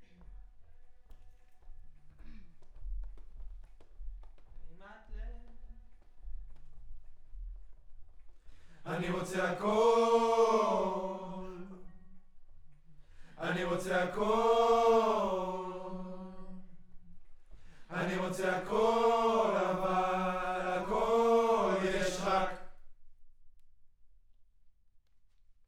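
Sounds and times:
choir singing: 0:08.8 - 0:12.2, 0:13.4 - 0:17.0, 0:17.8 - 0:22.8.

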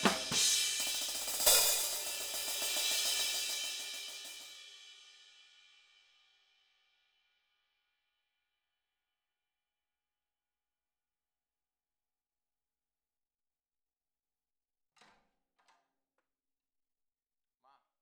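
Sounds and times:
hi-hat: 0:00.0 - 0:05.4.

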